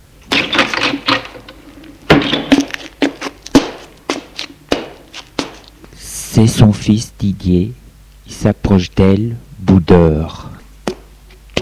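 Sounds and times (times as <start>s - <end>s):
bedroom door opening: 0.3s - 2.8s
speech: 6.4s - 10.5s.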